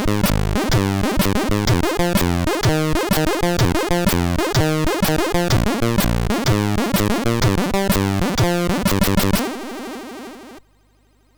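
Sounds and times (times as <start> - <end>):
chiptune music from a MOS6581R3 SID chip: 0.0 - 9.5.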